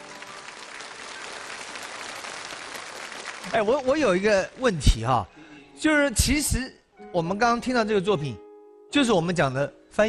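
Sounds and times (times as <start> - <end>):
audience applause: 0.0 - 4.6
speech: 3.4 - 10.0.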